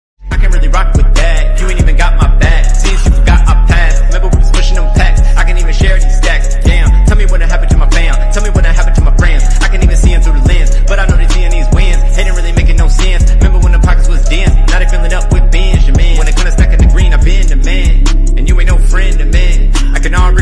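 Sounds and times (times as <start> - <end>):
rap music: 0.2 - 20.3.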